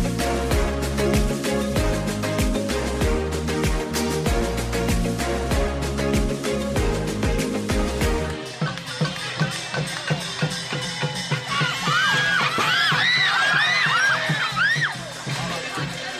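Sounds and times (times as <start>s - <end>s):
steady evenly spaced pounding beat: 0.0s - 16.1s
spectators yelling at a Burmese Lethwei boxing match in Thailand: 10.7s - 15.2s.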